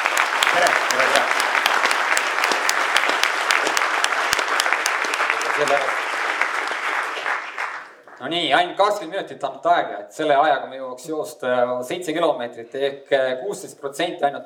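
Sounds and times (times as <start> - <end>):
audience applause: 0.0 - 8.2
speech: 8.3 - 14.4.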